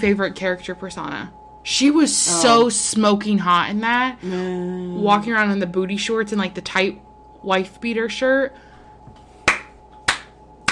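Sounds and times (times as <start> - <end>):
speech: 0.0 - 8.7
faint steady hum: 0.0 - 10.6
slow hand claps: 9.4 - 10.6.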